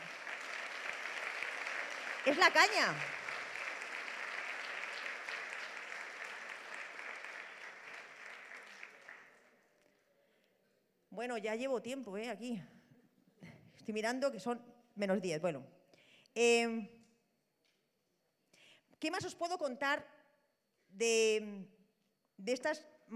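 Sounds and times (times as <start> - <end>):
audience applauding: 0.0 - 9.6
speech: 2.2 - 3.2, 11.2 - 12.8, 13.8 - 15.8, 16.4 - 17.0, 19.0 - 20.2, 20.9 - 21.8, 22.4 - 23.1.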